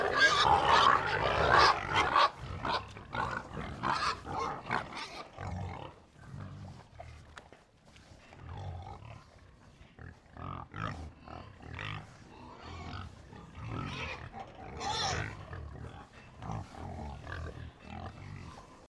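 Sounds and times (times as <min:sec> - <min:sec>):
pig squealing: 0:00.0 - 0:05.3, 0:13.7 - 0:15.4
pig herd grunting and snorting: 0:00.0 - 0:18.8.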